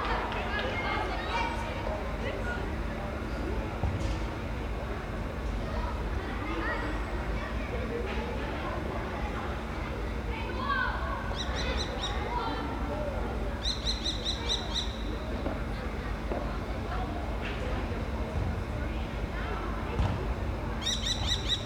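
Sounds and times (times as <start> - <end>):
distant constant hum of a ventilation system: 0.0 - 21.6
falcon calling: 13.6 - 15.1, 20.8 - 21.6.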